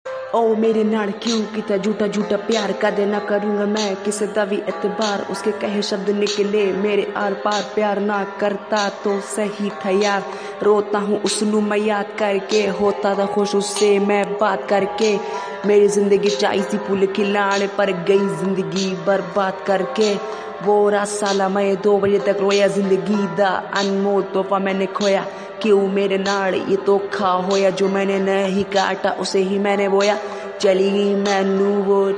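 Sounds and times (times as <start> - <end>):
sad rap song: 0.1 - 32.1.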